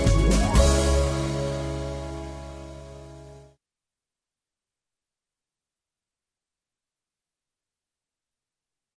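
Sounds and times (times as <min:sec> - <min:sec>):
square dance music rhythm track: 0:00.0 - 0:02.8.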